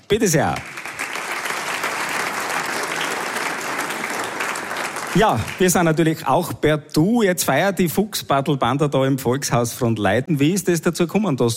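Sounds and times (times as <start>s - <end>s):
speech: 0.1s - 0.8s, 5.2s - 11.5s
audience applause: 0.4s - 6.1s.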